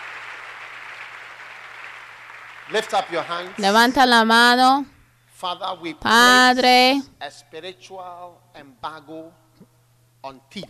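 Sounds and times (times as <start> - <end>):
congregation applauding at a worship service: 0.0 - 3.9
speech: 2.7 - 9.4, 10.2 - 10.6.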